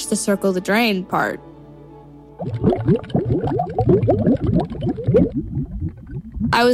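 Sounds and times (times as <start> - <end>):
speech: 0.1 - 1.5, 2.4 - 6.7
water bubble sound effects: 2.4 - 6.7.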